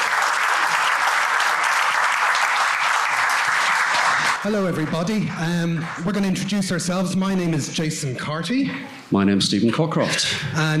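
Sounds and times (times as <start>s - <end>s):
live audience applause: 0.0s - 7.0s
speech: 4.4s - 10.7s.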